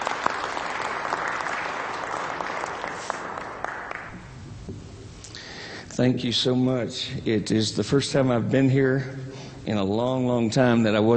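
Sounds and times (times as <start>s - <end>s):
audience applauding to welcome a returning alumnus guest speaker at a ministry service: 0.0s - 4.2s
speech: 6.0s - 11.1s.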